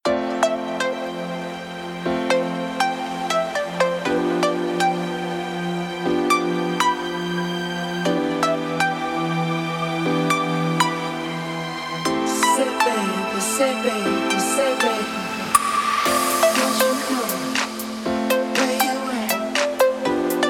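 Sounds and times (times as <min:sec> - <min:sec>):
house music with vocals: 0:00.1 - 0:20.4.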